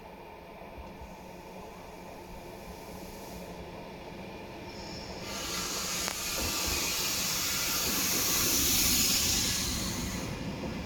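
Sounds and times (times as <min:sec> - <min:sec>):
REX regional train approaching at Großweikersdorf: 0:00.0 - 0:10.8.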